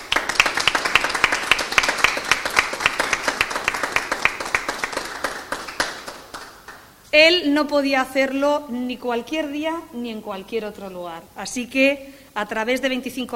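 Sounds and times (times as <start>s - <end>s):
audience applause: 0.0s - 6.9s
speech: 7.1s - 13.3s.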